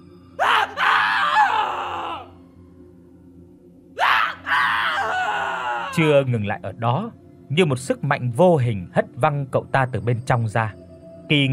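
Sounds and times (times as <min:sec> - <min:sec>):
shrill panicked scream from inside: 0:00.4 - 0:02.3, 0:04.0 - 0:06.0
speech: 0:06.0 - 0:11.5.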